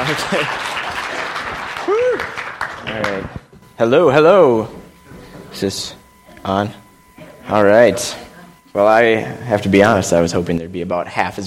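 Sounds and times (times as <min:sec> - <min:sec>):
audience applause welcoming a speaker onto a stage: 0:00.0 - 0:03.4
speech: 0:00.1 - 0:00.8, 0:01.9 - 0:04.8, 0:05.5 - 0:06.8, 0:07.5 - 0:11.4.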